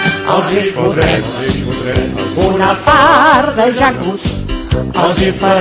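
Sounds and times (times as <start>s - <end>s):
large crowd singing a rousing club anthem: 0.1s - 4.1s, 4.9s - 5.5s
speech: 0.5s - 5.5s.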